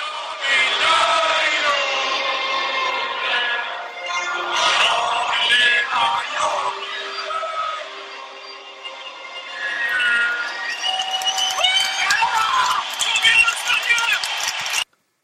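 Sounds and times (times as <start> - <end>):
large stadium crowd roaring and chanting in unison: 0.0 - 14.9.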